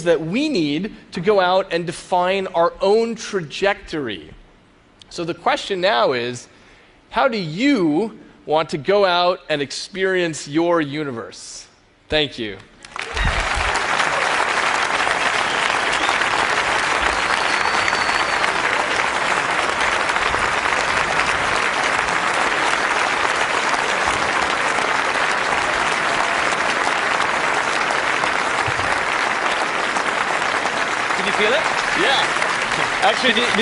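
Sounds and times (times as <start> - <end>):
speech: 0.0 - 4.4, 5.1 - 6.5, 7.1 - 13.2, 33.2 - 33.6
audience applause: 12.8 - 33.6.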